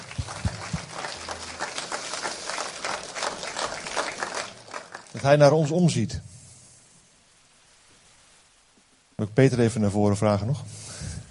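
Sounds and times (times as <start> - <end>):
audience applause: 0.0 - 6.0
speech: 5.2 - 6.3, 9.3 - 10.8.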